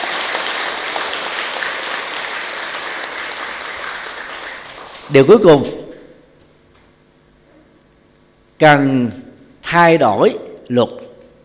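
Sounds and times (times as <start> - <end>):
loud audience applause at a talk on the Buddha's teachings: 0.0 - 5.2
speech: 5.1 - 5.8, 8.6 - 11.0.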